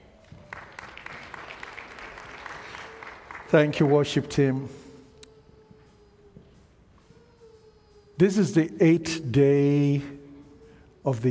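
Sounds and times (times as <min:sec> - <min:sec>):
audience clapping: 0:00.1 - 0:04.7
speech: 0:03.5 - 0:04.8, 0:08.2 - 0:10.2, 0:11.0 - 0:11.2.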